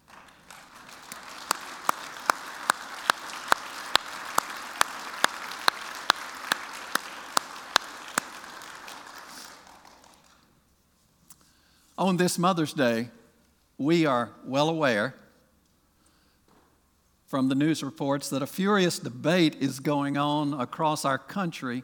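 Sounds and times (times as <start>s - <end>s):
audience applauding mothers: 0.0s - 10.4s
speech: 12.0s - 13.2s, 13.8s - 15.2s, 17.3s - 21.8s.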